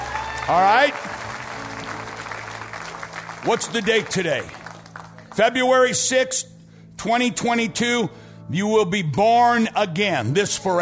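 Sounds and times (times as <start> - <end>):
audience applause: 0.0 - 5.4
speech: 0.5 - 1.2, 3.4 - 4.6, 5.4 - 10.7.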